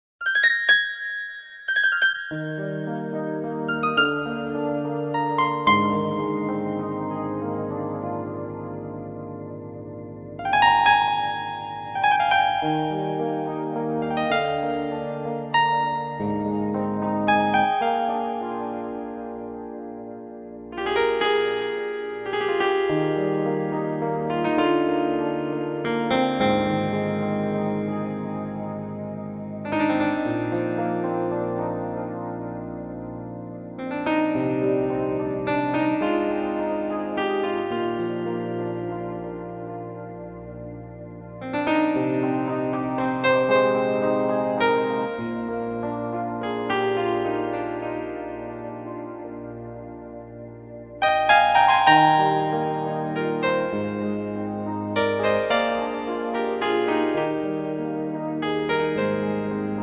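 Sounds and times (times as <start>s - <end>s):
waltz music: 0.3s - 59.8s.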